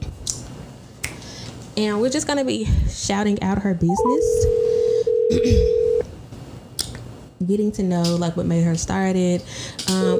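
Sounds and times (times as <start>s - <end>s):
speech: 1.8s - 4.6s, 5.3s - 5.8s, 7.4s - 10.1s
steady mid-pitched telephone tone: 3.9s - 6.1s, 10.0s - 10.1s.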